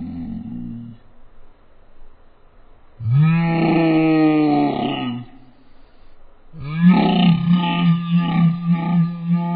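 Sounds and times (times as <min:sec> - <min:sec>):
person exclaiming woah: 0:03.1 - 0:05.4, 0:06.6 - 0:09.5.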